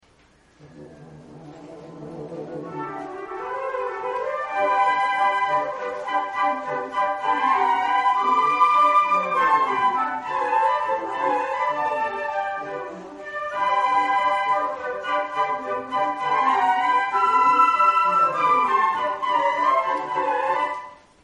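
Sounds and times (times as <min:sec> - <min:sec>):
flute in concert: 0:00.5 - 0:21.1.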